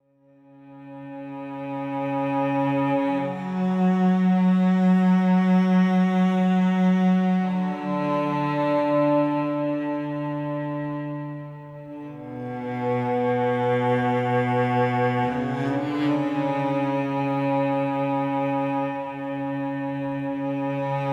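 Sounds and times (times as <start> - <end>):
cello: 0.0 - 21.1.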